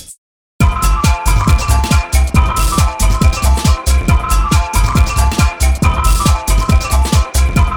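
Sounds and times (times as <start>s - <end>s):
marimba: 0.6s - 7.7s.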